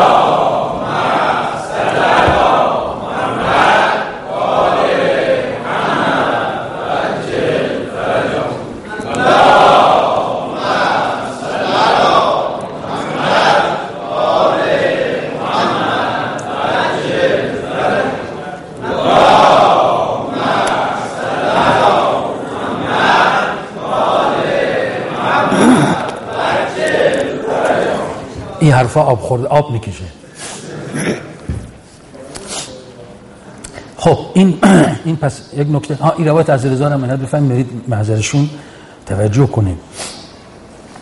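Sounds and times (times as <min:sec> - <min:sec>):
crowd chanting salawat blessings in unison: 0:00.0 - 0:28.6
speech: 0:28.9 - 0:30.1, 0:34.4 - 0:39.9.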